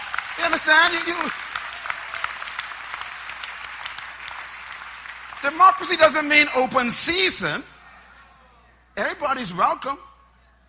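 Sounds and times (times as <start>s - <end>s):
audience clapping: 0.0s - 6.9s
speech: 0.6s - 1.4s, 5.4s - 7.7s, 9.0s - 10.1s.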